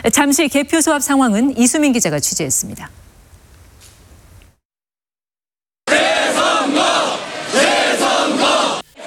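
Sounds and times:
speech: 0.0s - 3.0s
protest crowd chanting slogans: 5.9s - 9.0s.

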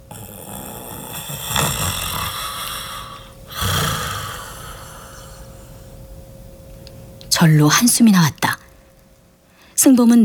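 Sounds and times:
old man snoring after going to bed: 0.0s - 5.5s
speech: 7.4s - 8.4s, 9.8s - 10.2s.

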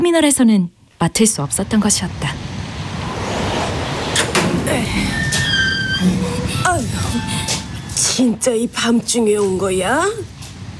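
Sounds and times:
speech: 0.0s - 2.4s, 6.0s - 10.3s
rushing hiss: 1.5s - 10.7s
door opening: 2.9s - 10.7s.

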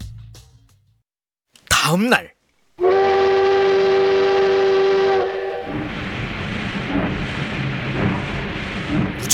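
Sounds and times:
speech: 1.9s - 2.9s
train whistle: 2.8s - 9.1s
train rumbling and clattering along the track: 5.0s - 9.3s.

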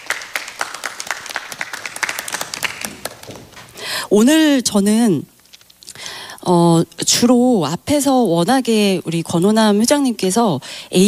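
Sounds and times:
audience applause: 0.0s - 3.7s
speech: 4.1s - 5.3s, 6.4s - 11.0s.

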